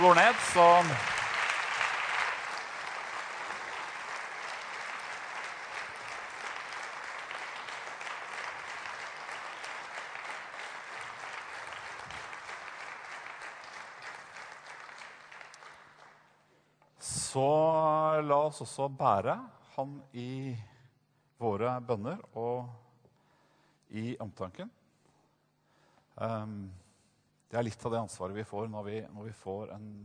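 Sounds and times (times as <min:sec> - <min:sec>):
speech: 0:00.0 - 0:01.2, 0:18.2 - 0:20.7, 0:21.4 - 0:22.8, 0:23.9 - 0:24.8, 0:26.2 - 0:26.8, 0:27.5 - 0:30.0
audience applause: 0:00.0 - 0:16.2.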